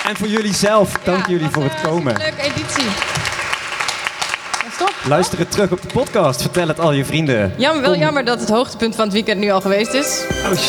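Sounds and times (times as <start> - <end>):
audience applause: 0.0 - 6.8
speech: 0.1 - 3.3, 4.8 - 10.6.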